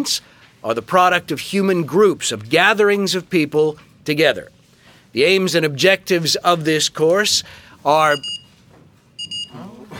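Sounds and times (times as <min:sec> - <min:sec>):
speech: 0:00.0 - 0:08.3
phone alert chimes: 0:09.2 - 0:09.6.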